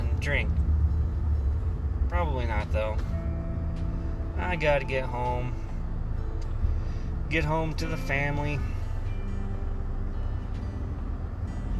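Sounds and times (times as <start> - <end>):
semi truck passing on road: 0.0 - 11.7
speech: 0.2 - 0.6, 2.1 - 3.2, 4.4 - 5.6, 7.3 - 8.7.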